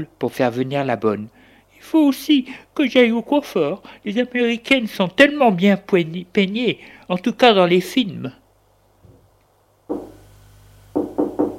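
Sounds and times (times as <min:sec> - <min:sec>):
speech: 0:00.0 - 0:08.4
knocking on a door: 0:09.9 - 0:10.2, 0:10.9 - 0:11.5.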